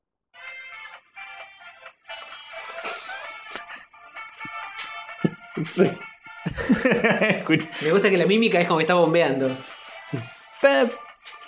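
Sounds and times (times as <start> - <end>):
song with epic saxophone melody as a phone ringtone on a bus: 0.4 - 11.4
laughter: 2.8 - 3.8, 6.5 - 8.0
speech: 5.2 - 11.0.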